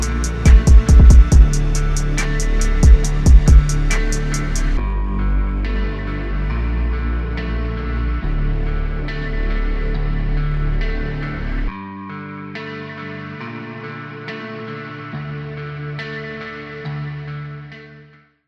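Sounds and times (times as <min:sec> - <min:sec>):
boosted bass: 0:00.0 - 0:11.8.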